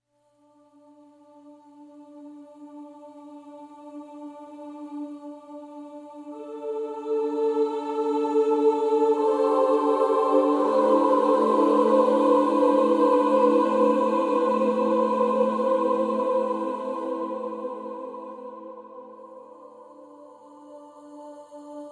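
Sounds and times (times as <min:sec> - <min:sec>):
choir singing: 0:00.4 - 0:21.9.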